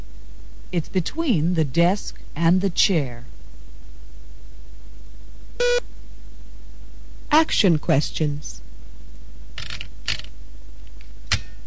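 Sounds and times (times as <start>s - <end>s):
speech: 0.7s - 3.3s, 7.4s - 8.6s
typewriter typing: 9.6s - 10.3s.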